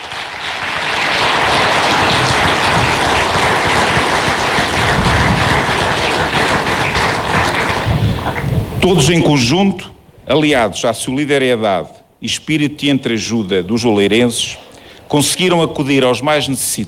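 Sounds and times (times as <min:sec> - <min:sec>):
large crowd applause: 0:00.0 - 0:09.5
speech: 0:08.8 - 0:16.8.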